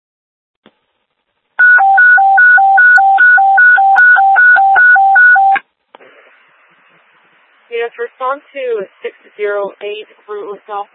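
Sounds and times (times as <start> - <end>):
dispatch alert tone: 1.6 - 5.6
speech: 8.3 - 10.9.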